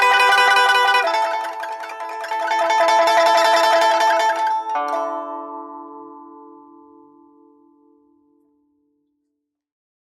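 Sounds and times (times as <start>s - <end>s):
pipa roll playing technique combo: 0.0s - 4.5s.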